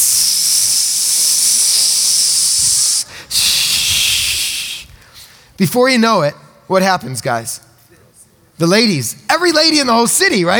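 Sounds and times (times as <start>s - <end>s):
spray bottle spraying: 0.0s - 4.9s
speech: 5.6s - 7.7s, 8.6s - 10.5s.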